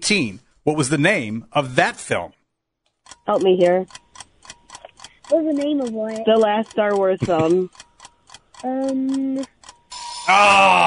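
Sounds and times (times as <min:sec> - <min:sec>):
speech: 0:00.1 - 0:02.4, 0:03.2 - 0:04.0, 0:05.3 - 0:07.8, 0:08.6 - 0:09.5, 0:10.3 - 0:10.8
quiz game buzzer: 0:09.8 - 0:10.8.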